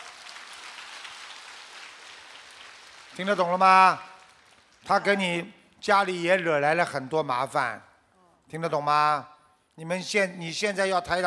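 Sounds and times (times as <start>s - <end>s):
applause: 0.0s - 5.2s
speech: 3.2s - 4.1s, 4.9s - 7.9s, 8.5s - 11.2s.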